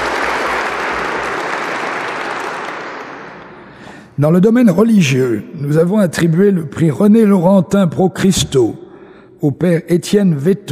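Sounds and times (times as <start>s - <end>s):
audience applause: 0.0s - 3.8s
speech: 4.2s - 8.8s, 9.4s - 10.7s.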